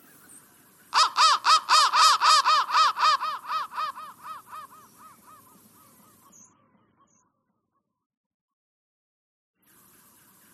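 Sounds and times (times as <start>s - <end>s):
crow cawing: 0.9s - 6.4s.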